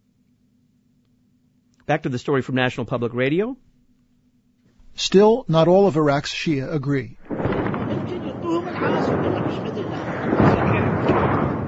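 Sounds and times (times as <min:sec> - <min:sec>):
speech: 0:01.9 - 0:03.7, 0:05.0 - 0:07.2, 0:08.5 - 0:09.8
gunfire and blasts from street fighting in Najaf, Iraq, 2004: 0:07.2 - 0:11.6.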